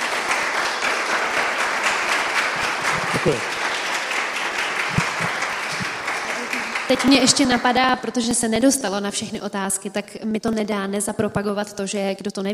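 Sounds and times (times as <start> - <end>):
audience applause: 0.0 - 8.1
speech: 3.2 - 3.6, 6.9 - 12.5.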